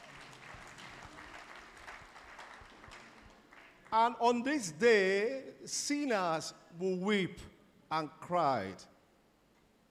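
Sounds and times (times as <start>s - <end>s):
audience clapping: 0.0s - 4.2s
speech: 3.9s - 8.9s.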